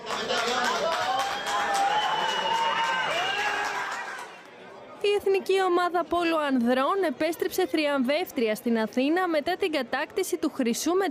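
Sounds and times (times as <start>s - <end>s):
crowd cheering and applauding arriving team: 0.0s - 4.5s
speech: 5.3s - 11.1s.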